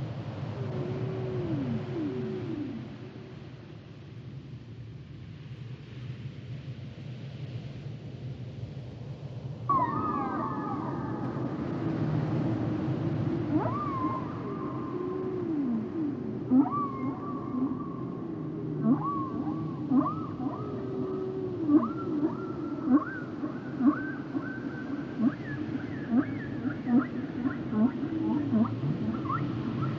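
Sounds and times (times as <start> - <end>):
dolphins: 0.0 - 3.6, 9.7 - 29.9
whale songs: 0.3 - 3.7, 9.7 - 29.9.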